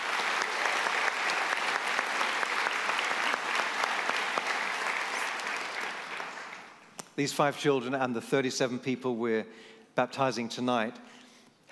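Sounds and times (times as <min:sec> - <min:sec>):
audience applause: 0:00.0 - 0:06.9
speech: 0:07.2 - 0:11.7.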